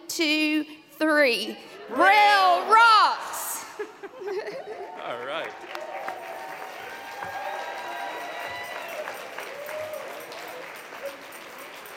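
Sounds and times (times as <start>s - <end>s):
speech: 0.1s - 6.3s
laughter: 3.4s - 5.5s
audience applause for award winners: 4.5s - 11.9s.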